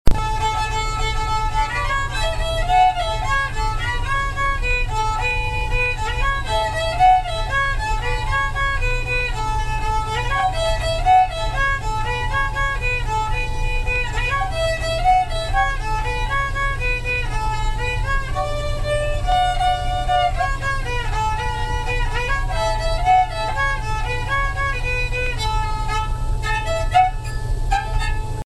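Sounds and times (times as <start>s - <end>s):
country fiddle instrumental: 0.1s - 28.4s.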